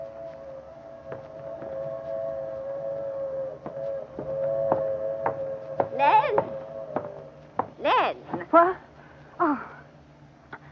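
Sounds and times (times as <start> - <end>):
passenger train whistle: 0.0 - 7.4
passenger train low rumble: 0.0 - 8.9
speech: 8.5 - 8.8.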